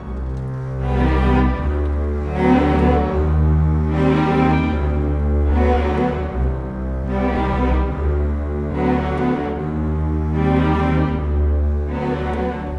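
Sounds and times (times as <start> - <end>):
cinematic orchestral strings: 0.0 - 12.7.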